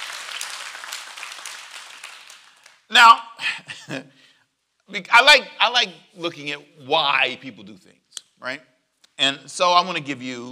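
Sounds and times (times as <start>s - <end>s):
church congregation clapping rhythmically: 0.0s - 3.2s
speech: 2.9s - 4.1s, 4.9s - 10.5s.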